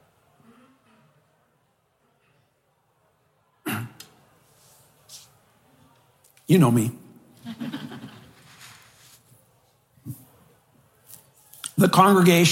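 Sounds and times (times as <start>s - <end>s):
person clearing throat: 3.7s - 4.1s
speech: 6.5s - 7.0s, 11.8s - 12.5s
laughter: 7.4s - 8.9s.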